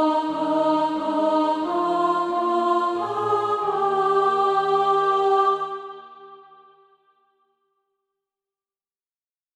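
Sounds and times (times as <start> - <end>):
alto voice singing SATB practice music: 0.0 - 6.8.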